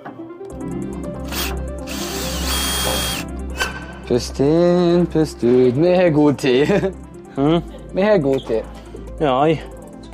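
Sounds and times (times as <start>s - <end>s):
power drill driving a screw: 1.3s - 3.2s
speech: 4.1s - 9.7s.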